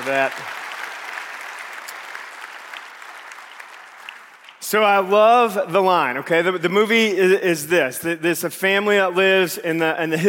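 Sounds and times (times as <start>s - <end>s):
speech: 0.0s - 0.6s, 4.7s - 10.2s
round of applause: 0.0s - 5.0s.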